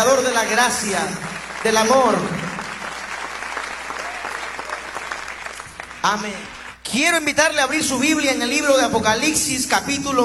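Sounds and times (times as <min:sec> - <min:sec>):
speech: 0:00.0 - 0:02.4, 0:06.0 - 0:10.2
audience applause: 0:00.5 - 0:06.8.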